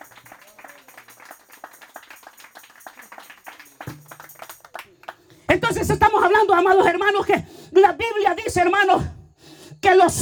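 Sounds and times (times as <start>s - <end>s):
voice rising out of the crowd: 0.0s - 5.1s
audience applause: 0.0s - 5.2s
speech: 5.5s - 9.2s, 9.8s - 10.1s.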